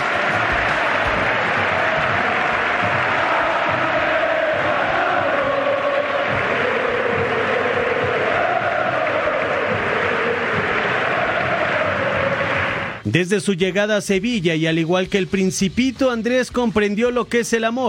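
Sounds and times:
Real Betis stadium crowd applauding a player's farewell: 0:00.0 - 0:13.0
speech: 0:13.1 - 0:17.8.

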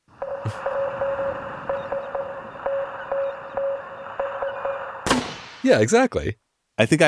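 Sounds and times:
Morse code SOS signal: 0:00.0 - 0:05.0
radio static hiss: 0:00.0 - 0:06.1
speech: 0:00.4 - 0:00.8, 0:05.6 - 0:07.0.

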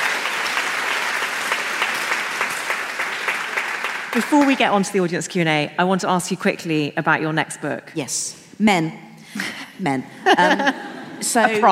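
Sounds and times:
audience applause: 0:00.0 - 0:04.9
speech: 0:04.1 - 0:11.6
laughter: 0:10.2 - 0:11.6.

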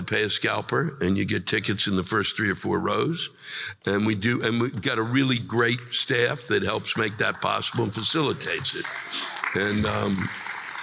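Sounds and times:
speech: 0:00.1 - 0:10.5
smattering of applause: 0:06.6 - 0:10.8.

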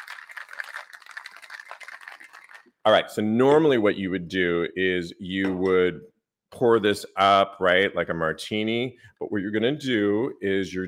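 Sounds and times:
cocktail shaker shaking: 0:00.0 - 0:02.8
speech: 0:02.8 - 0:10.8.

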